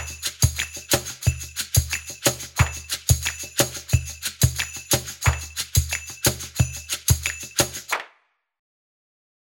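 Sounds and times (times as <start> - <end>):
percussion loop at 90 bpm: 0.0 - 8.0.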